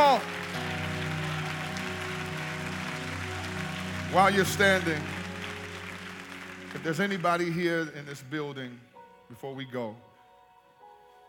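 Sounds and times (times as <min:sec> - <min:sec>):
audience clapping: 0:00.0 - 0:08.3
speech: 0:04.1 - 0:05.2, 0:06.8 - 0:10.1.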